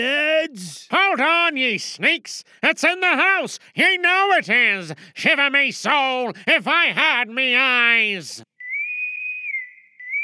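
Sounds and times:
speech: 0:00.0 - 0:08.5
whistle blown as a signal: 0:08.6 - 0:10.2.

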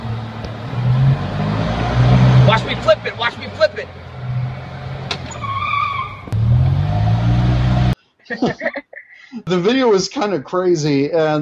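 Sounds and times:
golf cart driving at full speed: 0:00.0 - 0:08.0
laughter: 0:08.2 - 0:09.6
speech: 0:09.5 - 0:11.4.

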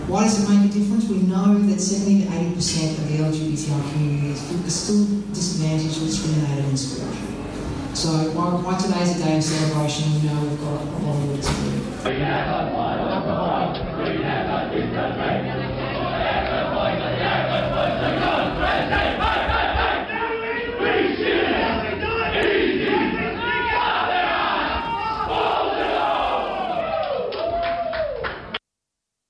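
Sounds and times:
speech: 0:00.1 - 0:15.8
crowd cheering and shouting at the 2018 Yarra Valley Pride Cup football event in Yarra Glen: 0:12.1 - 0:28.3.

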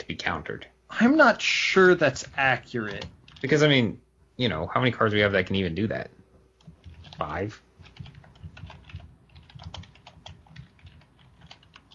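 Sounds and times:
speech: 0:00.1 - 0:06.2, 0:07.2 - 0:07.6
fingers typing on a computer keyboard: 0:02.0 - 0:03.6, 0:06.5 - 0:11.9.

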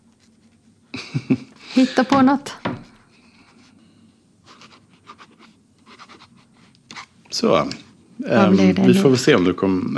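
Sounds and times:
laughter: 0:00.9 - 0:01.8
speech: 0:01.2 - 0:02.6, 0:07.4 - 0:09.9
pen scratching across a notebook page: 0:04.6 - 0:06.6.

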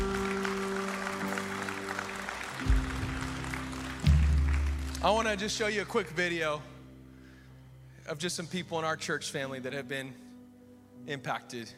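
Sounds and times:
audience clapping hands: 0:00.0 - 0:06.2
speech: 0:05.0 - 0:06.7, 0:08.1 - 0:10.2, 0:11.0 - 0:11.7.

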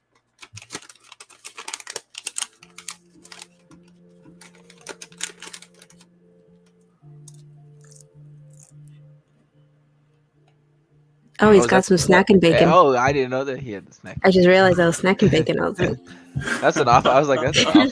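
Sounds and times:
Dunkin' Donuts paper bag crinkling and rustling for ASMR: 0:00.0 - 0:06.1, 0:07.2 - 0:08.8
speech: 0:11.4 - 0:17.9
laughter: 0:14.7 - 0:17.9.

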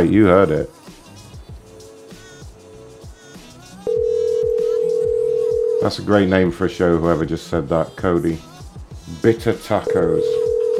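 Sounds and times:
speech: 0:00.0 - 0:00.8, 0:05.8 - 0:08.5, 0:09.1 - 0:10.4
rhythmic thumping music with chiming high notes: 0:00.0 - 0:10.7
telephone dial tone: 0:03.9 - 0:06.1, 0:09.9 - 0:10.7.

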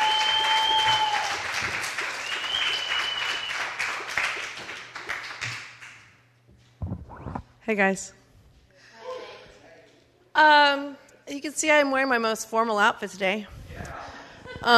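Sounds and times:
theater audience applause welcoming a comedian to the stage: 0:00.0 - 0:05.9
speech: 0:07.7 - 0:08.2, 0:10.4 - 0:13.6.

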